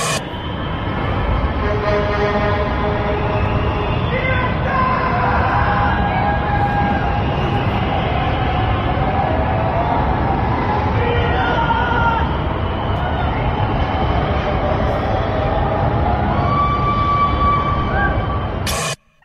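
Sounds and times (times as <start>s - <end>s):
overlapping shouts and cheers: 0.0s - 1.1s, 2.9s - 19.0s
whistles: 0.0s - 1.6s, 3.1s - 4.7s, 6.6s - 10.0s, 11.8s - 19.2s
large crowd roaring: 0.0s - 19.0s.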